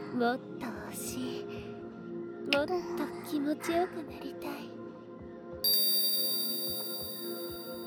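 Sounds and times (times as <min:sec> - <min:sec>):
speech: 0:00.2 - 0:01.5, 0:02.6 - 0:04.7
hypnosis bell ringing: 0:05.7 - 0:07.8.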